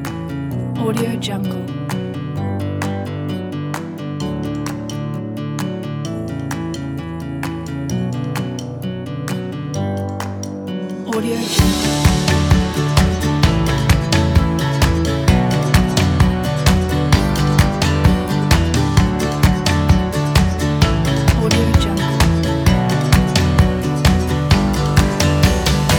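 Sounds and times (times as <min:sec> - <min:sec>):
upbeat acoustic indie folk music: 0:00.0 - 0:25.9
drum kit: 0:09.8 - 0:25.9.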